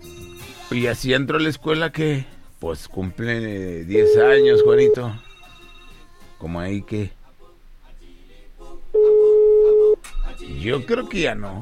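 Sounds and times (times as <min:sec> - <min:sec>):
speech: 0:00.7 - 0:05.3, 0:06.4 - 0:07.2, 0:10.6 - 0:11.6
telephone ringing: 0:04.0 - 0:06.5, 0:09.0 - 0:10.0.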